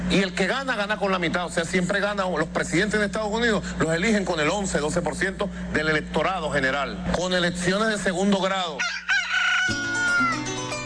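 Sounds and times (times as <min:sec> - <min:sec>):
speech: 0:00.1 - 0:09.1
rooster crowing: 0:08.8 - 0:10.8.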